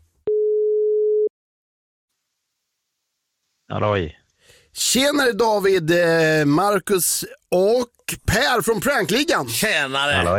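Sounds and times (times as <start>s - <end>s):
telephone tone: 0.3s - 1.3s
speech: 3.7s - 10.3s.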